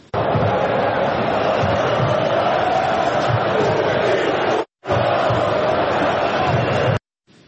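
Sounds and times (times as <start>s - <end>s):
football fans chanting in stadium: 0.0s - 7.0s.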